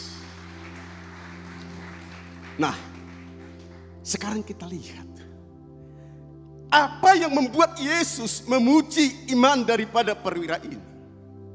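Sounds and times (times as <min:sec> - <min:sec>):
audience applause: 0:00.0 - 0:03.9
speech: 0:02.6 - 0:02.9, 0:04.0 - 0:05.3, 0:06.7 - 0:10.9.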